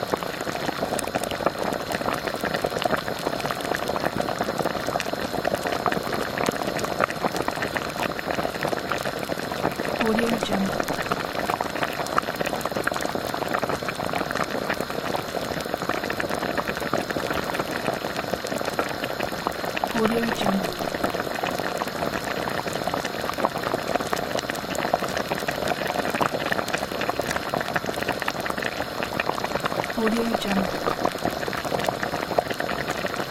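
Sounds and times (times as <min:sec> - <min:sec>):
fruit sauce bubbling while cooking: 0:00.0 - 0:33.3.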